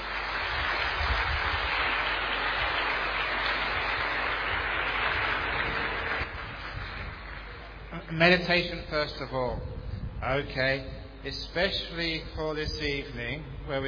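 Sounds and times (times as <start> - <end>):
audience applauding to welcome the monk Ajahn Brahm: 0.0 - 8.0
speech: 8.2 - 13.8.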